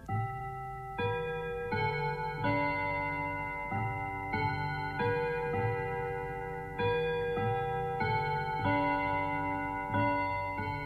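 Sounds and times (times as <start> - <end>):
clock chiming: 0.0 - 10.8.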